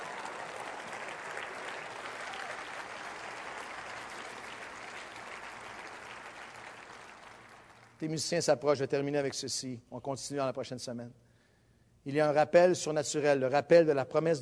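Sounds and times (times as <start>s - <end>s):
audience applause: 0.0s - 8.0s
speech: 8.0s - 11.2s, 12.0s - 14.4s.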